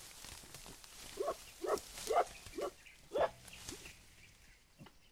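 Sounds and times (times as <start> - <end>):
mountain gorilla giving uuk grunts: 1.1 - 3.9.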